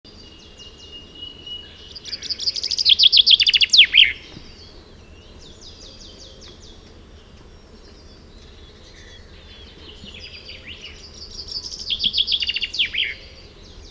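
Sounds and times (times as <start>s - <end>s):
common chaffinch Fringilla coelebs song: 0.1s - 13.8s.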